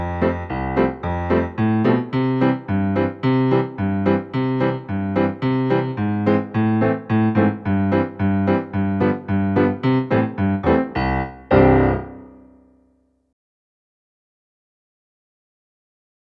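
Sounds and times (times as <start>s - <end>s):
background music: 0.0s - 12.6s.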